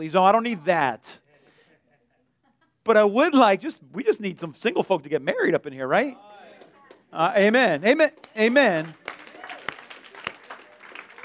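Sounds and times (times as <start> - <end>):
speech: 0.0 - 1.2, 2.8 - 6.4, 7.1 - 9.0
scattered handclapping: 6.2 - 11.2.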